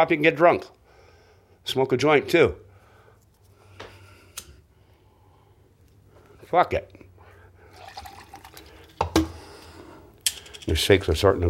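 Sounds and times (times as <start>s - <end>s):
speech: 0.0s - 0.8s, 1.6s - 2.6s, 6.5s - 7.0s, 10.7s - 11.4s
liquid trickling: 7.7s - 9.0s
liquid spilling onto a phone: 7.7s - 9.2s.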